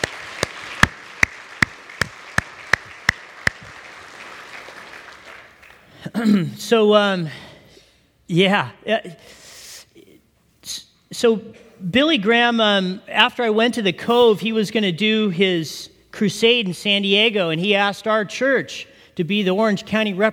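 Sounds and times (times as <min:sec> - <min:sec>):
audience applause: 0:00.0 - 0:05.8
speech: 0:06.2 - 0:07.4, 0:08.3 - 0:09.4, 0:10.7 - 0:20.3.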